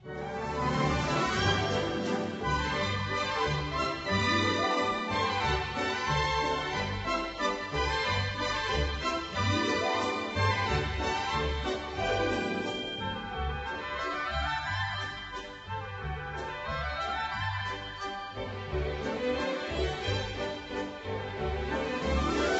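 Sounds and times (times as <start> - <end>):
children's theme music: 0.0 - 22.5.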